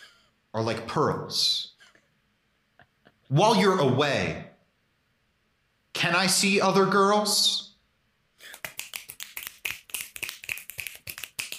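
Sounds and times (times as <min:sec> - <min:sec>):
speech: 0:00.5 - 0:01.7, 0:03.3 - 0:04.5, 0:06.0 - 0:07.6
finger snaps as slam poetry applause: 0:08.4 - 0:11.5.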